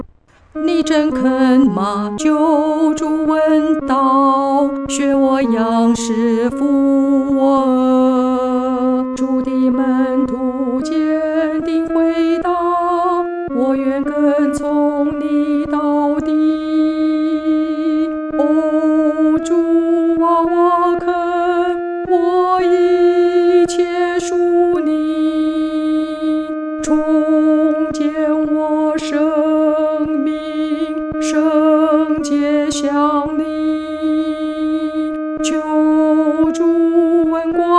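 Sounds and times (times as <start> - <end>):
solo singing, second voice: 0.5 - 37.7.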